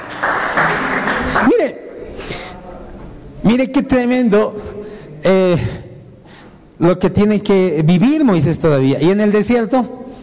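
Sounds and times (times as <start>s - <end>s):
audience applause: 0.0s - 1.6s
speech: 1.4s - 1.8s, 3.5s - 5.8s, 6.8s - 10.0s.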